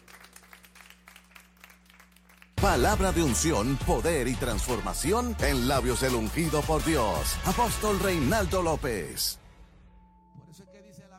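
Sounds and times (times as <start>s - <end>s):
audience applause: 0.0s - 2.6s
speech: 2.6s - 9.4s.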